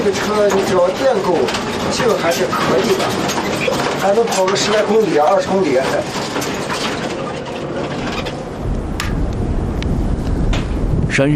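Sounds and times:
speech: 0.1 - 6.6, 11.2 - 11.3
strong mountain wind: 6.0 - 11.3.

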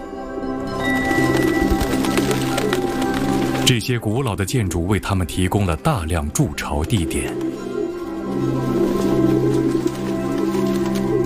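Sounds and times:
soft wing flutters: 0.7 - 3.9, 6.8 - 11.2
pigeons cooing: 0.7 - 5.6, 6.8 - 11.2
speech: 3.7 - 7.5.

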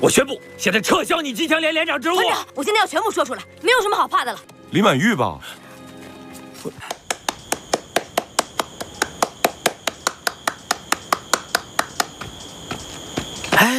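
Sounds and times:
speech: 0.0 - 5.6, 6.6 - 7.0
hands clapping: 6.8 - 12.3.

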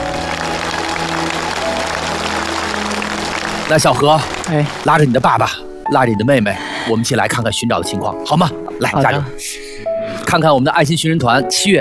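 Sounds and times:
audience applause: 0.0 - 5.5
speech: 3.7 - 9.6, 10.3 - 11.8.

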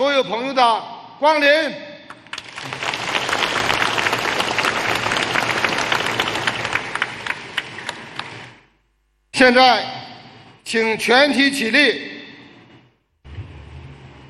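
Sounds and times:
speech: 0.1 - 1.9, 9.4 - 10.0, 10.7 - 12.1
audience applause: 2.2 - 8.6.

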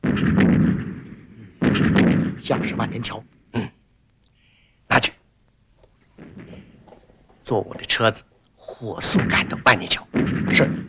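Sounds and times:
distant artillery fire: 0.0 - 3.1, 6.1 - 8.4, 9.0 - 10.8
speech: 2.5 - 3.7, 7.5 - 10.8.

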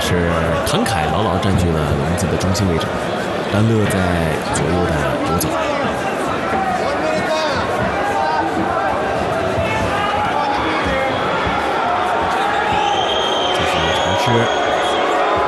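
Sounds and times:
speech: 0.1 - 5.7
arena crowd booing: 5.3 - 15.4.

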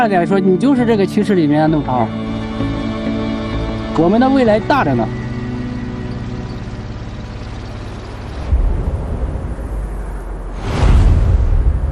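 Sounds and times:
speech: 0.0 - 2.8, 4.0 - 5.2
strong wind roaring across open desert: 4.6 - 11.9.

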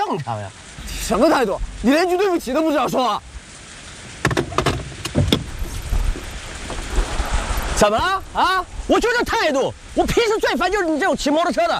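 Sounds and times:
rain falling: 0.0 - 11.7
speech: 0.1 - 3.3, 7.8 - 11.7
sharp clicks and knocks: 4.2 - 6.9.

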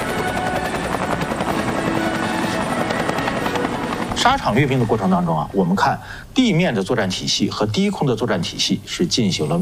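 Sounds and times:
military helicopters roaring overhead: 0.0 - 5.3
speech: 4.2 - 9.6.

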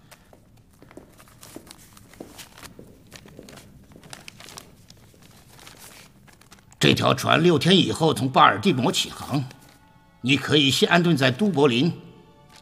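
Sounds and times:
paper envelope being torn open: 1.2 - 6.8
speech: 6.8 - 9.6, 10.2 - 12.0.

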